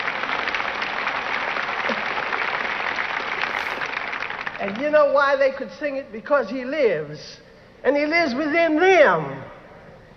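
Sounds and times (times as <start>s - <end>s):
audience applause: 0.0s - 4.8s
speech: 4.6s - 9.4s.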